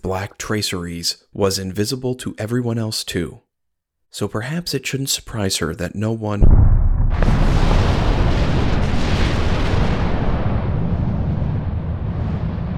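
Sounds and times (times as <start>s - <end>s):
speech: 0.0s - 3.5s, 4.1s - 7.6s
distant explosion with rumbling boom: 6.4s - 12.7s.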